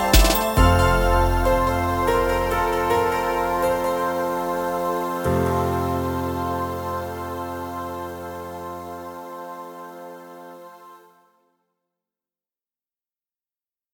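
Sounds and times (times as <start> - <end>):
bells ringing: 0.0 - 6.6.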